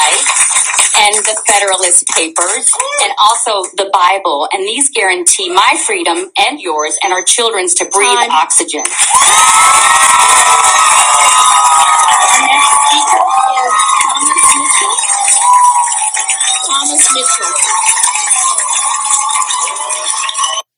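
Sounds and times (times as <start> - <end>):
speech: 1.0 - 10.8
crowd cheering and shouting: 2.7 - 3.2, 8.9 - 20.7.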